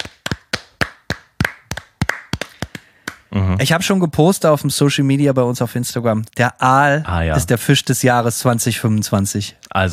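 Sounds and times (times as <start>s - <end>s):
hand clapping: 0.0s - 3.3s
speech: 3.3s - 9.9s.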